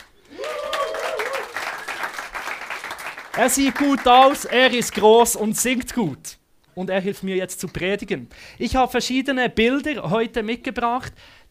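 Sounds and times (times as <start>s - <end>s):
audience applause: 0.0s - 5.0s
speech: 3.4s - 11.4s.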